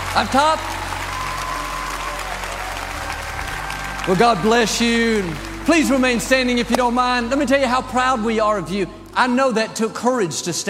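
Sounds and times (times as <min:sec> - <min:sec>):
audience cheering: 0:00.0 - 0:06.9
speech: 0:00.2 - 0:00.8, 0:04.0 - 0:10.6.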